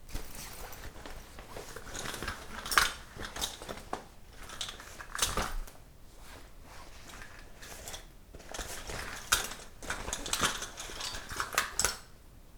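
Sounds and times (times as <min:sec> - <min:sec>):
fiddling with a purse: 0:00.0 - 0:12.0.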